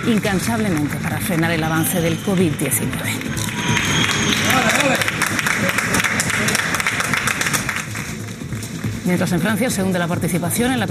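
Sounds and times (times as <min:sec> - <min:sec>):
speech: 0:00.0 - 0:05.0, 0:09.0 - 0:10.8
thousands of people in Spain clapping from the windows of their homes: 0:00.0 - 0:09.1.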